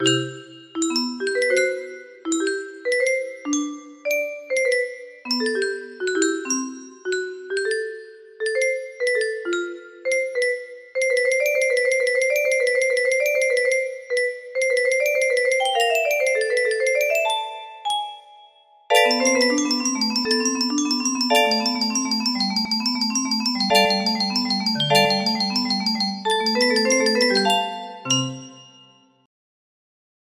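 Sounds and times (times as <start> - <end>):
music box melody: 0.0 - 29.3.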